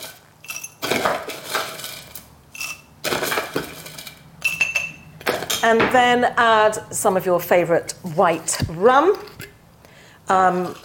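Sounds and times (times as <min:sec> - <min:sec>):
crushed ice being put into a cocktail glass for a keto mojito: 0:00.0 - 0:05.6
speech: 0:05.6 - 0:09.3, 0:10.3 - 0:10.8.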